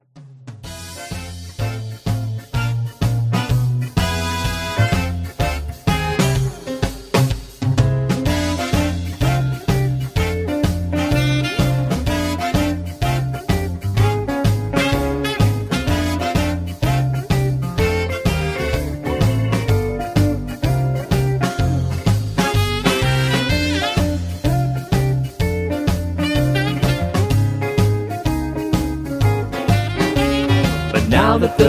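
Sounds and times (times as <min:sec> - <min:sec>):
instrumental music: 0:00.5 - 0:31.6
backing vocals: 0:30.9 - 0:31.6.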